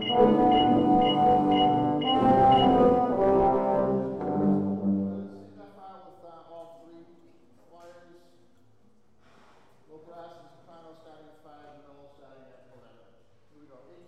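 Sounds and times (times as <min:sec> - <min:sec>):
low brass in Woburn MA: 0:00.0 - 0:05.7.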